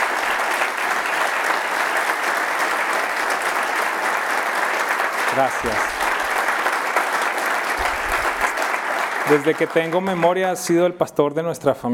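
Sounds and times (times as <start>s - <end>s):
audience applause: 0.0s - 10.8s
speech: 5.4s - 6.0s, 9.3s - 11.9s.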